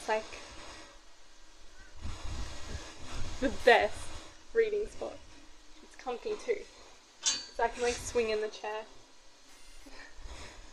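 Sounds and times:
speech: 0.1 - 0.5, 3.4 - 5.2, 6.0 - 6.8, 7.6 - 9.0
wind buffeting the microphone outdoors on a sunny, windy day: 1.7 - 5.3.

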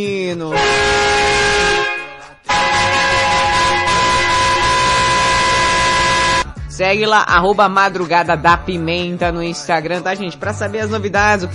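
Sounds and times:
speech: 0.0 - 1.2, 6.8 - 11.5
truck horn blaring: 0.5 - 6.5.

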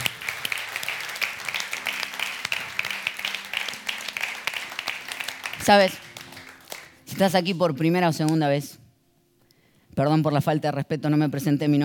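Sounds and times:
audience applauding: 0.0 - 7.0
speech: 5.6 - 6.0, 7.1 - 8.8, 10.0 - 11.8.

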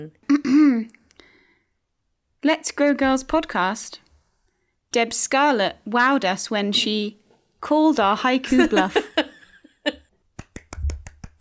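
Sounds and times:
speech: 0.0 - 1.0, 2.4 - 4.0, 4.9 - 10.0
soft sparse hand claps: 10.3 - 11.3.

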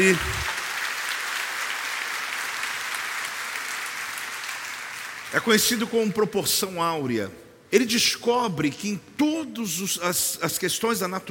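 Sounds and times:
speech: 0.0 - 0.4, 5.3 - 11.2
audience applause: 0.0 - 5.3.

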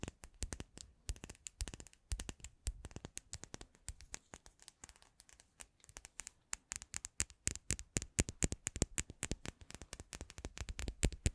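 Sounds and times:
rapid irregular tapping with sharp clicks: 0.0 - 11.3.

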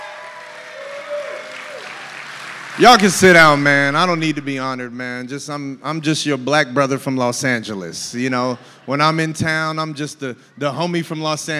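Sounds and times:
audience applause: 0.0 - 4.2
speech: 2.8 - 11.5.

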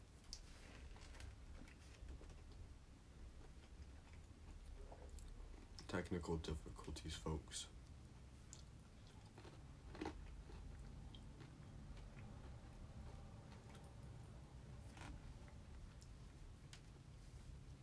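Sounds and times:
person munching on Kentucky Fried Chicken: 0.0 - 5.9, 7.8 - 17.2
speech: 6.0 - 7.8.

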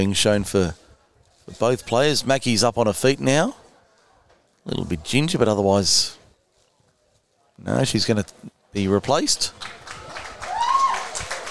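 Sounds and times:
speech: 0.0 - 0.8, 1.5 - 3.6, 4.6 - 6.2, 7.6 - 9.8
crowd applause: 9.5 - 11.4.

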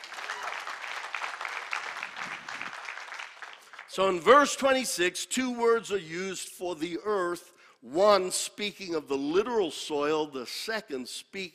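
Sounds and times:
audience clapping: 0.0 - 4.4
speech: 4.0 - 11.5.

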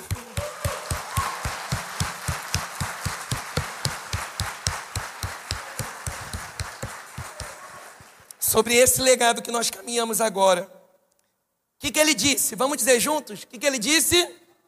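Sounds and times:
audience clapping in a steady rhythm: 0.0 - 8.6
speech: 8.5 - 10.8, 11.9 - 14.4.

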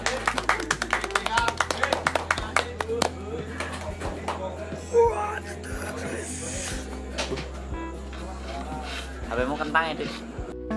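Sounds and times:
quick sharp hand claps: 0.0 - 4.5
murmured voices: 0.0 - 10.6
speech: 9.6 - 10.3.

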